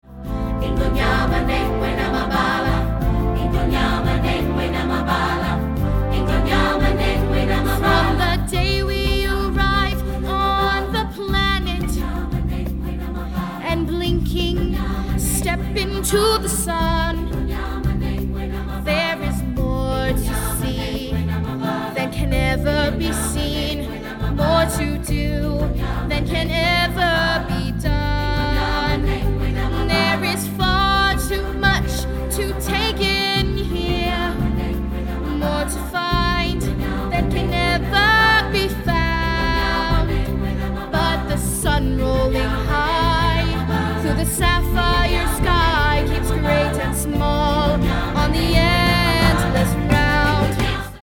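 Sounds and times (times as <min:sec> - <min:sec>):
person singing: 0:00.0 - 0:51.0.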